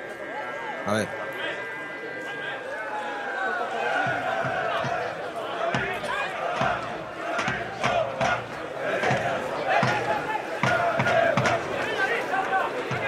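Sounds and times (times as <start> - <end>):
football supporters' stand chanting: 0.0 - 13.0
speech: 0.8 - 1.3.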